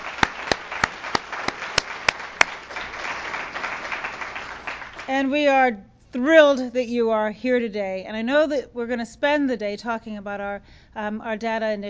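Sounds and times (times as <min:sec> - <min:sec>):
audience applause: 0:00.0 - 0:05.1
speech: 0:05.1 - 0:11.8.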